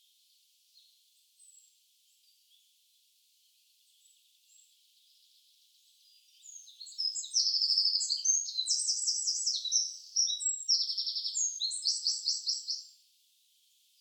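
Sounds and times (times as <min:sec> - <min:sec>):
Eurasian wren singing: 0:06.1 - 0:12.9.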